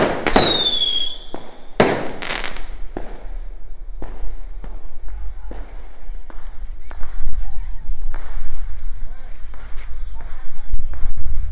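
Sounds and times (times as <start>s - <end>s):
whistling rocket rising: 0.0s - 2.5s
fireworks cracking and banging on Lunar New Year's Eve: 0.0s - 11.5s
family voices chattering: 0.1s - 11.5s.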